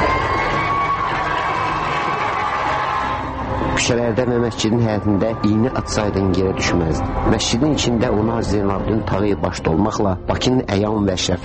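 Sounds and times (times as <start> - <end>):
huge crowd lining the streets of Baku cheering: 0.0 - 6.5
speech: 3.9 - 11.4.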